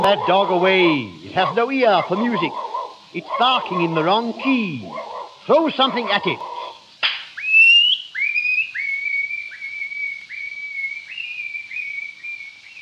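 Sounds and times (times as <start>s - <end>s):
speech: 0.0s - 6.5s
person whistling an imitation of a nightingale's song: 7.3s - 12.7s.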